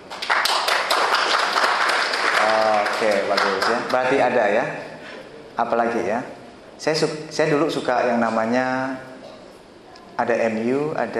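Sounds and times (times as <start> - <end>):
audience clapping for Manchester United fans: 0.0 - 4.3
speech: 3.0 - 4.9, 5.6 - 9.1, 10.2 - 11.1.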